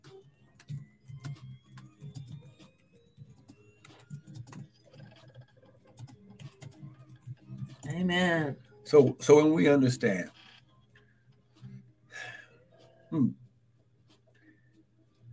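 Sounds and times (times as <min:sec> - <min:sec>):
fingers typing on a keyboard: 0:00.0 - 0:07.9
speech: 0:07.9 - 0:10.4.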